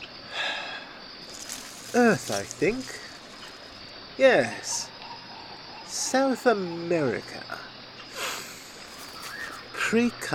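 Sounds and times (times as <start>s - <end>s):
speech: 1.9s - 3.0s, 4.2s - 4.9s, 5.9s - 7.8s, 9.9s - 10.3s
person sniffing a tree: 8.1s - 9.5s.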